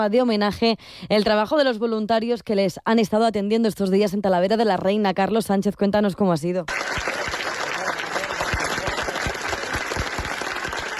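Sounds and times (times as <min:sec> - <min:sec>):
speech: 0:00.0 - 0:07.2
applause for volunteers: 0:06.7 - 0:10.9.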